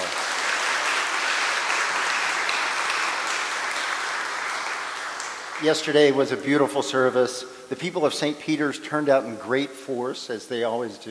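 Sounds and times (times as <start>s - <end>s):
audience applause: 0.0s - 6.2s
speech: 5.6s - 11.0s.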